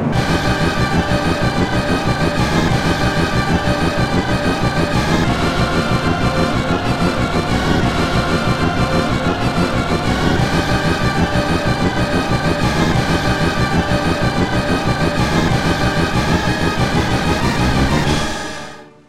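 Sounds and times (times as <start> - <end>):
synthetic symphony music: 0.1 - 19.0.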